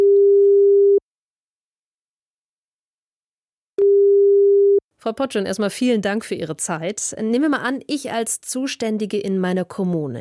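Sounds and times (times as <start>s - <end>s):
telephone ringing tone: 0.0s - 1.0s, 3.8s - 4.8s
speech: 5.0s - 10.1s.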